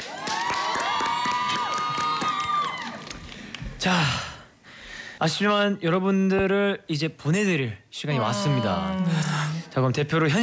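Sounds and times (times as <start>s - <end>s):
audience cheering: 0.0s - 3.2s
audience applause: 0.0s - 3.6s
speech: 3.8s - 4.2s, 5.2s - 10.4s.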